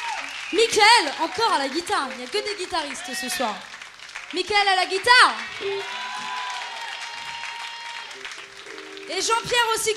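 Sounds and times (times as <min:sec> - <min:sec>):
audience applauding: 0:00.0 - 0:09.9
speech: 0:00.5 - 0:03.7, 0:04.3 - 0:06.0, 0:09.1 - 0:09.9.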